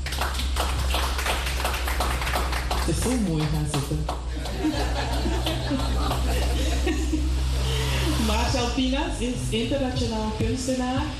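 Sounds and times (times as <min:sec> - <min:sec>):
audience applause: 0:00.0 - 0:07.0
speech: 0:02.9 - 0:06.4, 0:08.8 - 0:11.1
laughter: 0:04.2 - 0:08.4.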